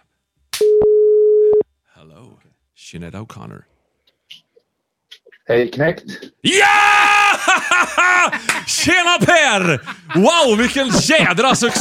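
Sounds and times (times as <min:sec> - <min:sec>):
telephone call tone: 0:00.6 - 0:01.6
speech: 0:02.8 - 0:03.7, 0:05.5 - 0:11.7
laughter: 0:06.9 - 0:11.7.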